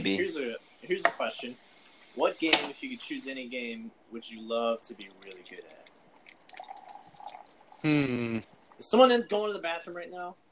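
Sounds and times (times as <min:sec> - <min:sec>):
speech: 0:00.0 - 0:05.9, 0:07.8 - 0:10.4
boiling water poured into a cup: 0:05.0 - 0:07.8.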